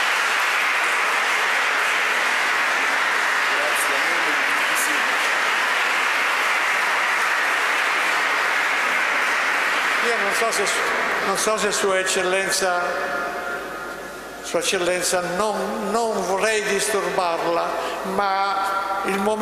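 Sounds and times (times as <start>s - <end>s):
audience applause: 0.0s - 13.1s
speech: 10.4s - 13.6s, 14.5s - 19.4s.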